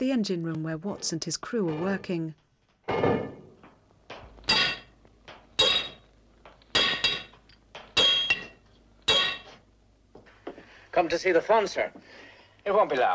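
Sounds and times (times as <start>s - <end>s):
speech: 0.0s - 3.4s, 11.0s - 13.1s
hammering on nuts in an engine room: 4.4s - 6.1s, 6.7s - 9.6s.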